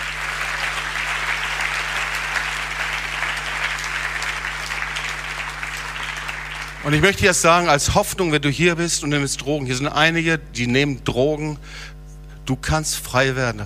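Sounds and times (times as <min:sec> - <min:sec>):
crowd applauding: 0:00.0 - 0:07.7
speech: 0:06.8 - 0:13.6.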